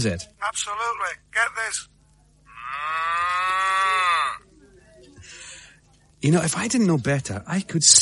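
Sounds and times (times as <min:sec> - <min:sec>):
speech: 0:00.0 - 0:01.9, 0:06.2 - 0:08.0
person imitating a cow mooing: 0:02.5 - 0:04.5.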